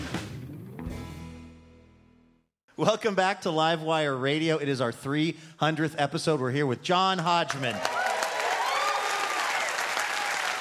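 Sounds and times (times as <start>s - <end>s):
speech: 2.8s - 8.0s
audience applause: 7.7s - 10.6s.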